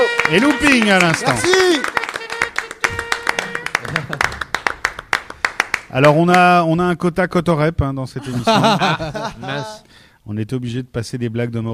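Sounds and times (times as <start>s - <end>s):
comedy show audience clapping: 0.0s - 6.5s
speech: 0.3s - 2.0s, 5.9s - 11.7s
laughter: 3.4s - 4.5s, 8.2s - 9.8s.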